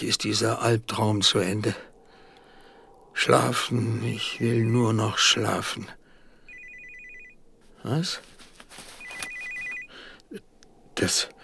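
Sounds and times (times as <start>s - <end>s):
speech: 0.0s - 1.9s, 3.2s - 6.0s, 7.8s - 8.3s, 10.3s - 11.4s
telephone ringing: 6.5s - 7.4s, 8.9s - 10.0s.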